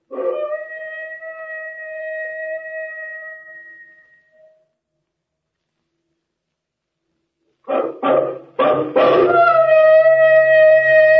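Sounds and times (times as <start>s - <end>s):
dog howling: 0.1s - 0.9s, 7.7s - 11.1s
dog barking: 7.7s - 9.8s.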